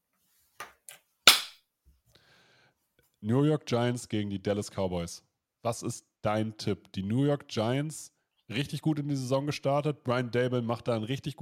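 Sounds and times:
single hand clap: 1.3s - 1.6s
speech: 3.2s - 11.3s.

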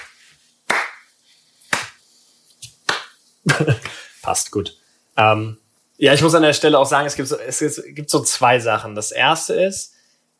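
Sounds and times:
single hand clap: 0.0s - 1.1s, 1.7s - 2.0s, 2.9s - 3.2s
speech: 3.4s - 10.0s.

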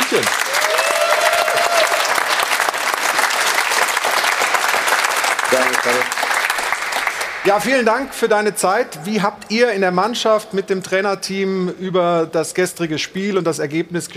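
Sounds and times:
studio audience applause: 0.0s - 8.0s
speech: 0.1s - 0.4s, 7.5s - 14.1s.

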